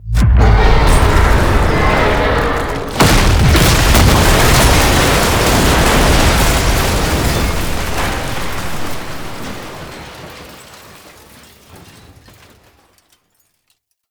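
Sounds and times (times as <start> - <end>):
defense stage collapsing: 0.0 - 10.8.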